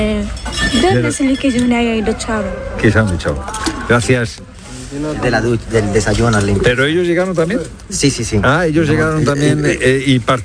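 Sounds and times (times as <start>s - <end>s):
speech: 0.0s - 10.4s
plates and cutlery clinking while being washed by hand: 0.3s - 2.0s.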